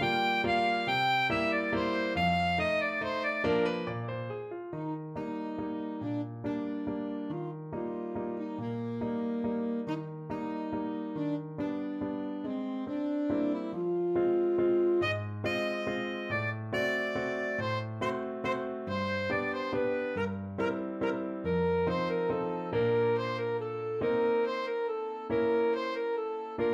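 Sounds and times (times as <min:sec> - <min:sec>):
alto saxophone playing a waltz: 0:00.0 - 0:26.7.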